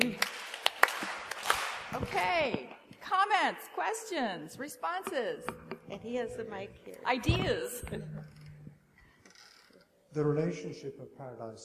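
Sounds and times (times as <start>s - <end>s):
audience clapping: 0.0s - 2.6s
speech: 1.9s - 8.2s, 10.1s - 11.6s.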